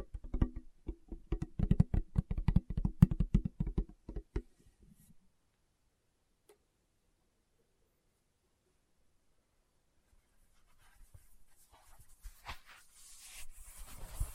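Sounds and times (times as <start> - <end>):
fingertip tapping: 0.0 - 4.5
faint rustling and scratching: 10.1 - 14.3.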